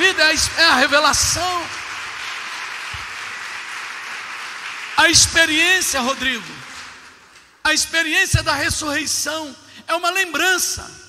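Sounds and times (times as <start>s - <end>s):
audience applause: 0.0s - 7.5s
speech: 0.3s - 1.8s, 5.0s - 6.7s, 7.7s - 11.0s.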